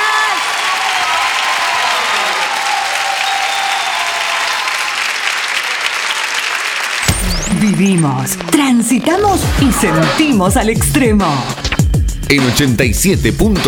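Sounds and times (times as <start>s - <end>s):
audience applause: 0.0s - 8.6s
speech: 7.8s - 11.7s, 12.3s - 13.6s.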